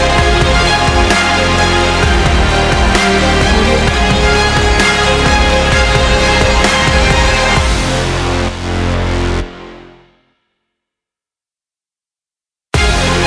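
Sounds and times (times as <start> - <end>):
dramatic sport epic rock trailer music: 0.0 - 10.0, 12.8 - 13.2.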